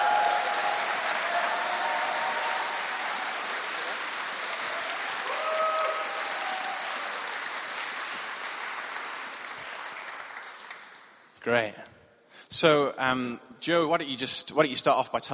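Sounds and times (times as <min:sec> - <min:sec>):
audience applause: 0:00.0 - 0:11.2
speech: 0:11.4 - 0:11.8, 0:12.5 - 0:15.3.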